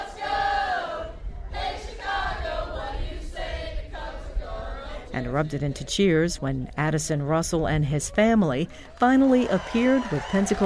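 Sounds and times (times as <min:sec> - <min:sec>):
crowd of fans singing a team song: 0:00.0 - 0:06.2
speech: 0:05.2 - 0:10.6.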